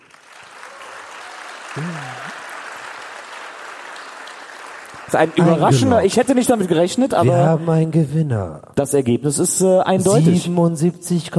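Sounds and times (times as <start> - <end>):
audience applause: 0.0 - 6.7
brief cheer: 0.5 - 2.5
speech: 1.8 - 2.4, 5.1 - 11.3.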